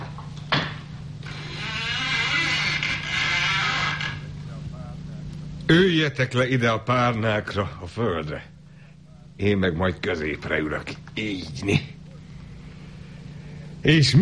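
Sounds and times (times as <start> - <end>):
door being opened: 0.5 - 4.3
speech: 5.7 - 8.5, 9.4 - 11.9, 13.8 - 14.1.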